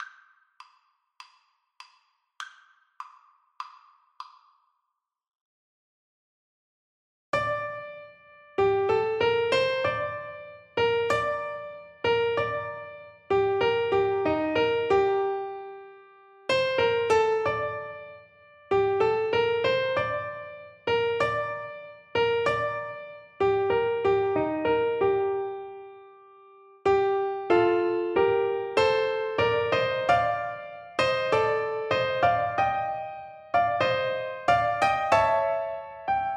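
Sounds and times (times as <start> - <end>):
piano duet: 7.4 - 36.3.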